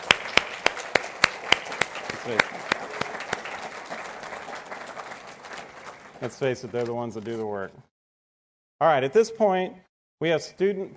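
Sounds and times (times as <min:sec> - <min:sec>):
audience applause for the moms: 0:00.0 - 0:07.0
speech: 0:02.3 - 0:02.6, 0:06.2 - 0:07.9, 0:08.8 - 0:10.9.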